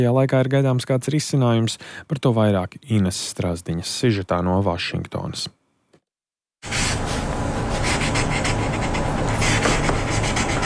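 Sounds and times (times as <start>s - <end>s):
speech: 0.0s - 5.6s
pen scratching on paper: 7.8s - 10.6s.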